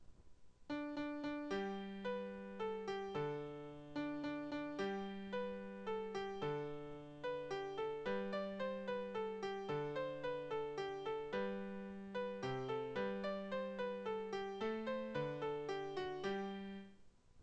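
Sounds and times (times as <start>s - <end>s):
piano: 0.7s - 17.0s.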